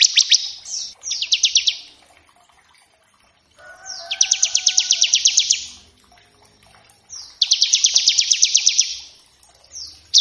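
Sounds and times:
bar-winged prinia singing buzzy trills: 0.0 - 2.0, 3.6 - 10.2.

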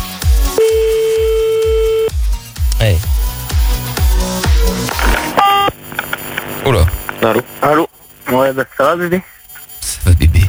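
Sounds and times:
low rhythmic thumping music: 0.0 - 5.2
telephone line tone as a call is placed: 0.6 - 2.1, 5.3 - 8.3
speech: 6.7 - 7.8, 8.5 - 10.4.

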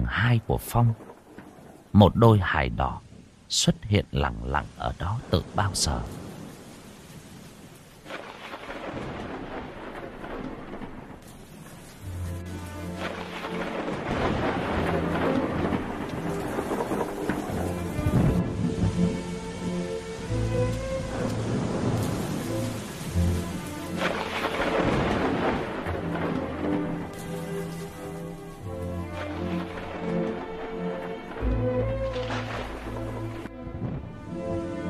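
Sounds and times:
heavy rain: 0.0 - 34.8
speech: 0.1 - 1.1, 1.9 - 6.3
thunder: 6.1 - 12.1, 12.8 - 19.3, 21.0 - 28.4, 29.1 - 30.6, 31.2 - 34.8.

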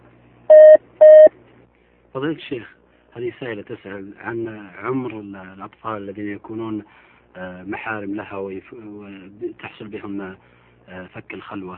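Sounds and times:
telephone tones as a call connects on a phone-in line: 0.5 - 1.3
speech: 2.2 - 11.7.

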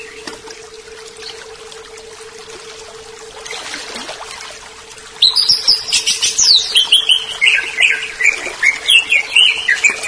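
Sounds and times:
leafbird singing varied phrases: 5.2 - 10.0.

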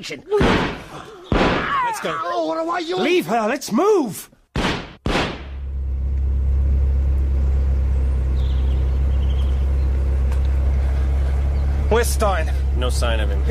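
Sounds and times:
speech: 0.0 - 1.2, 1.9 - 4.4, 11.9 - 13.4
sharp thump: 0.4 - 1.8, 4.6 - 5.6
Cadillac engine droning steadily in Beverly Hills: 5.3 - 13.4.

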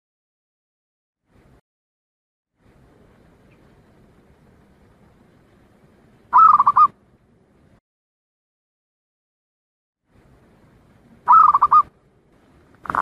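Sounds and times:
Zebra dove staccato cooing song: 6.3 - 6.9, 11.3 - 11.9, 12.8 - 13.0.

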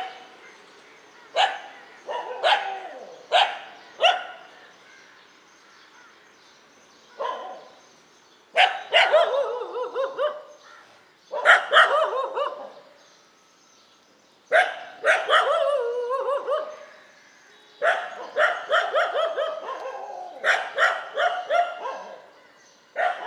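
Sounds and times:
dogs barking: 0.0 - 0.3, 1.3 - 4.5, 7.2 - 7.8, 8.6 - 10.6, 11.3 - 12.9, 14.5 - 16.9, 17.8 - 23.2.

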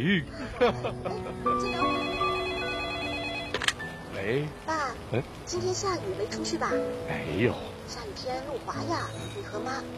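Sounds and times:
speech: 0.0 - 2.2, 4.1 - 9.9
laughter: 0.1 - 1.6
telephone ringing: 1.6 - 3.8.

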